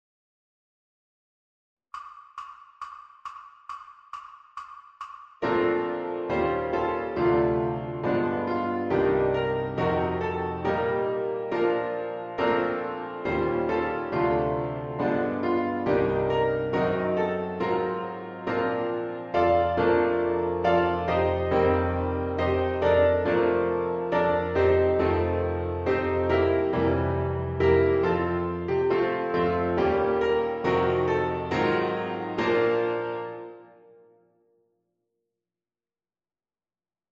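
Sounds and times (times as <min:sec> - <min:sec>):
Christmas piano music: 0:05.4 - 0:34.2.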